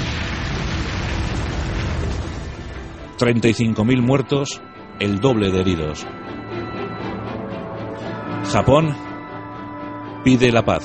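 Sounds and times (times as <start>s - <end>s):
atomic bomb explosion dropped by a B-29 over Nagasaki: 0.0s - 4.1s
speech: 3.2s - 6.3s, 8.5s - 9.1s, 10.2s - 10.8s.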